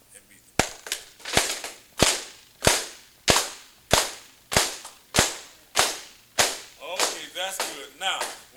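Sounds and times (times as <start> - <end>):
sharp hand claps with palms together: 0.6 - 8.5
speech: 7.4 - 8.5.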